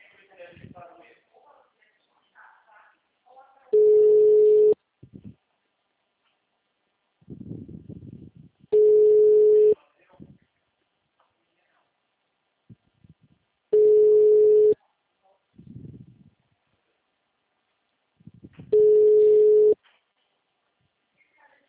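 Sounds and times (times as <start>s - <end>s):
telephone ringback tone while a call is placed: 3.8s - 4.8s, 8.8s - 9.8s, 13.8s - 14.8s, 18.8s - 19.8s.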